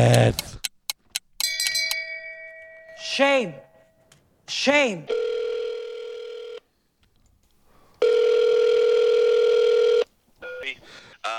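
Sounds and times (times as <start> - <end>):
speech: 0.0 - 0.5, 3.2 - 3.7, 4.5 - 5.2
telephone dial tone for hotline call: 5.1 - 6.7, 8.0 - 10.8.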